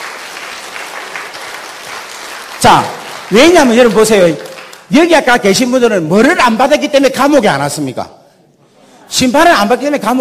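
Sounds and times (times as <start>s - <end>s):
congregation applause at a church service: 0.0s - 5.2s
speech: 2.6s - 8.2s, 9.1s - 10.1s.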